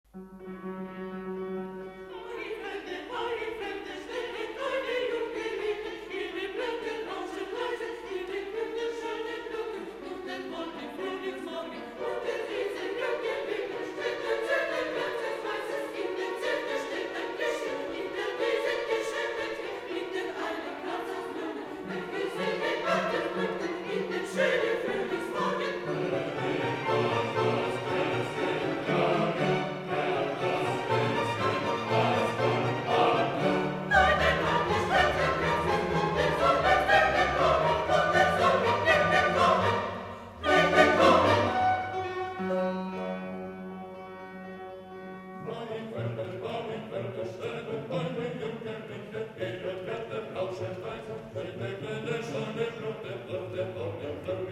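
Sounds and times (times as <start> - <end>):
orchestra playing: 0.1 - 4.4, 12.0 - 47.0
choir singing: 0.9 - 54.5.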